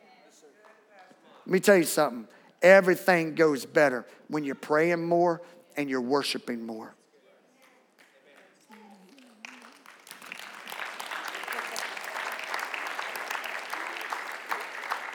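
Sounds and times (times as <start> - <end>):
speech: 1.4 - 7.0
audience clapping: 8.0 - 15.1.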